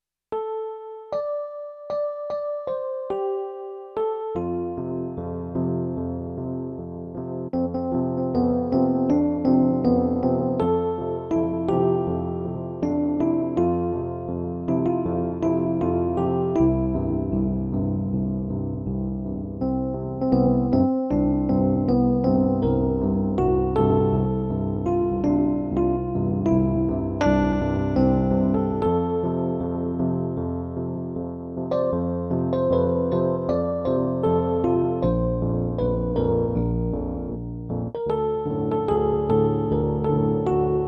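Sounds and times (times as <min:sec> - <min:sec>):
piano: 0:00.3 - 0:40.8.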